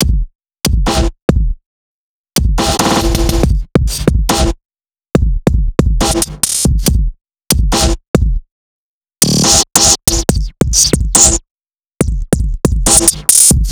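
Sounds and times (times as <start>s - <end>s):
drum: 0.0s - 1.6s, 2.4s - 4.6s, 5.2s - 8.4s, 9.2s - 11.4s, 12.0s - 13.6s.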